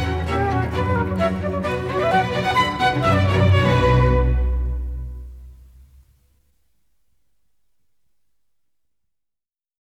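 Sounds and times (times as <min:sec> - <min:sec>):
orchestral suite in B minor: 0:00.0 - 0:05.9.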